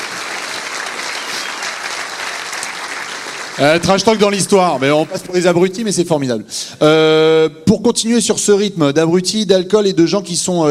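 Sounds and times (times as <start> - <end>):
applause: 0.0 - 5.6
speech: 3.6 - 10.7.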